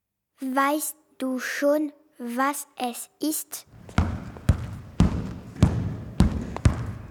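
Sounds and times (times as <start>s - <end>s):
speech: 0.4s - 3.8s
ball landing in the net: 3.8s - 7.0s.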